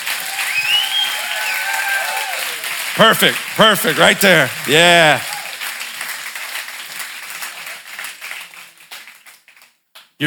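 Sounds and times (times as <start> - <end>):
audience clapping hands: 0.0 - 10.2
speech: 3.0 - 5.3.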